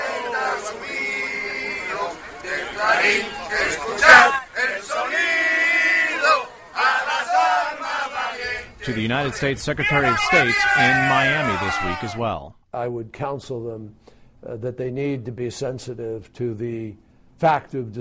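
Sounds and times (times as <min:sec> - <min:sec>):
protesters in Doral, Florida chanting and shouting: 0:00.0 - 0:12.3
speech: 0:08.9 - 0:17.9.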